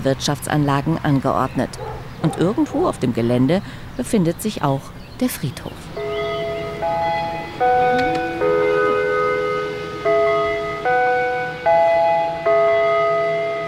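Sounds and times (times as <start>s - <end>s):
speech: 0.0s - 6.0s
clock chime gong signal: 6.0s - 13.6s.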